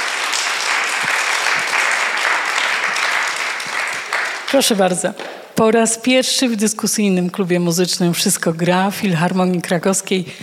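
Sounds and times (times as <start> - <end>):
audience applause: 0.0 - 5.4
speech: 4.5 - 10.4.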